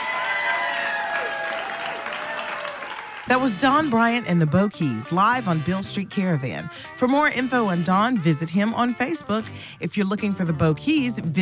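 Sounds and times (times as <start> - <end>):
audience applause: 0.0 - 3.3
speech: 3.3 - 11.3.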